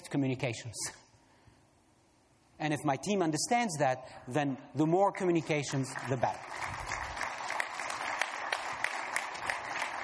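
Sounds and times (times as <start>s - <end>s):
speech: 0.1s - 1.0s, 2.6s - 7.0s
audience clapping: 5.5s - 10.0s.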